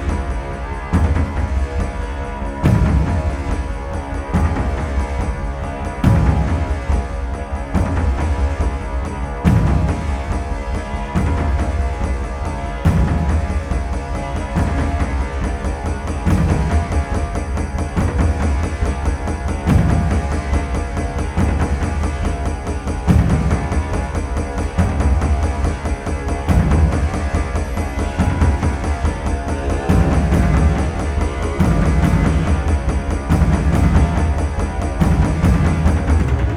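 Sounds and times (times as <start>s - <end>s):
thunder drums: 0.0s - 36.5s.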